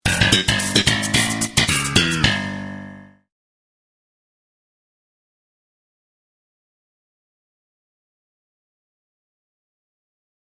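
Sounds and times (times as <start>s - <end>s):
sitcom bass riff: 0.0s - 3.3s.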